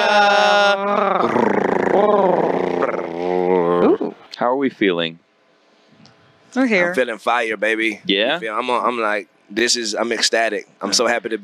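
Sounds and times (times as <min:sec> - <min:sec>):
people imitating a cat purring: 0:00.0 - 0:04.3
speech: 0:04.7 - 0:05.2, 0:06.5 - 0:11.4.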